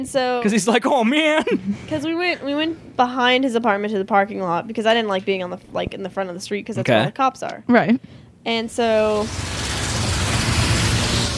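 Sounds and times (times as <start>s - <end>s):
speech: 0.0s - 9.6s
road traffic on a street: 8.7s - 11.3s.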